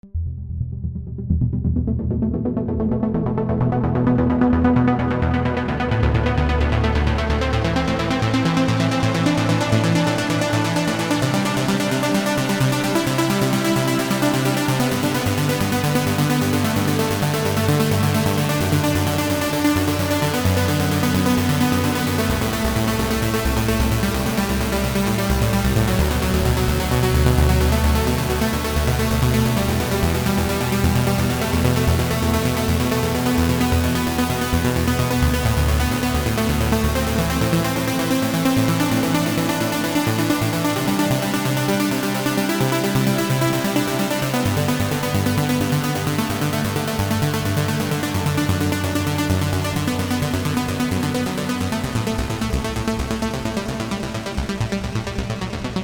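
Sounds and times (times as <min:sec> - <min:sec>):
trance music: 0:00.3 - 0:55.8.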